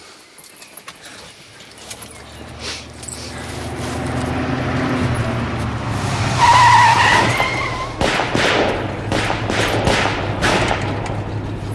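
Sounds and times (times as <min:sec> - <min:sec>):
car tires screeching while braking hard on a road: 0:01.4 - 0:11.7
low car engine rumble: 0:01.4 - 0:11.7
sharp, evenly spaced bangs: 0:05.9 - 0:11.7.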